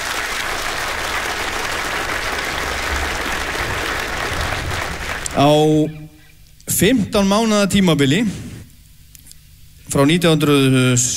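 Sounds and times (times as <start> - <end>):
audience applause for a musician: 0.0 - 5.8
speech: 5.4 - 6.0, 6.7 - 8.5, 9.9 - 11.1.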